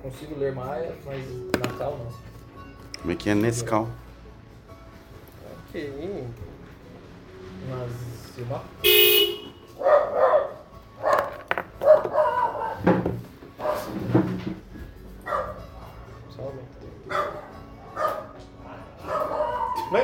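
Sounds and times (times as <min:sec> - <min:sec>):
speech: 0:00.0 - 0:02.4, 0:03.0 - 0:04.1, 0:05.7 - 0:06.5, 0:07.6 - 0:09.0
dogs barking: 0:09.7 - 0:14.1, 0:15.2 - 0:16.2, 0:17.0 - 0:20.0.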